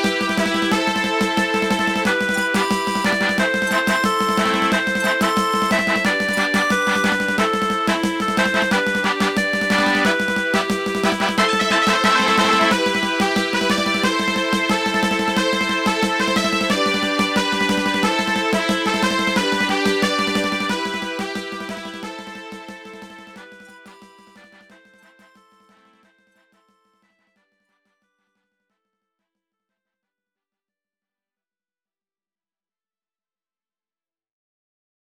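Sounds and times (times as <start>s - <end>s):
fanfares: 0.1s - 21.9s.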